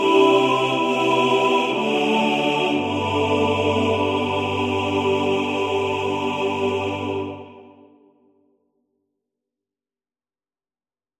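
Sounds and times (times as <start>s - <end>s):
male choir singing with all voices equally weighted: 0.0s - 8.0s.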